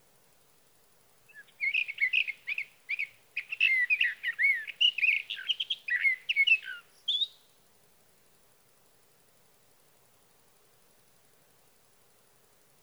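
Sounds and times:
sage thrasher warbling song: 1.3 - 7.4.

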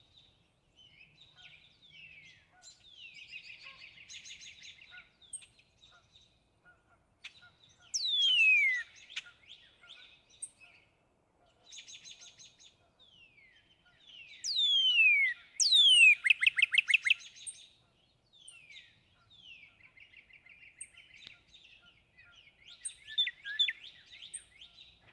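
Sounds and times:
Northern cardinal song of loud down-slurred whistles: 8.0 - 8.9, 14.5 - 17.2.

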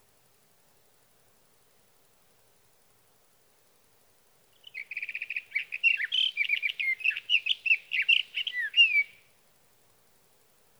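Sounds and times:
Sage thrasher singing: 4.6 - 9.2.

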